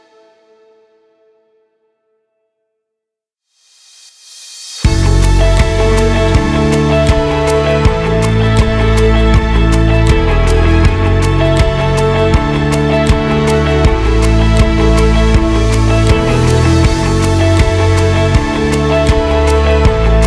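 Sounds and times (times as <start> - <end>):
inspirational guitar music: 4.9 - 20.2.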